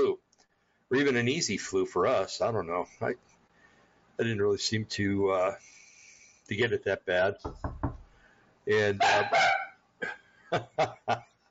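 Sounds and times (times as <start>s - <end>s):
speech: 0.9s - 3.4s, 4.2s - 5.8s, 6.5s - 7.8s, 8.7s - 11.3s
dogs barking after someone knocks on wood: 9.0s - 9.8s.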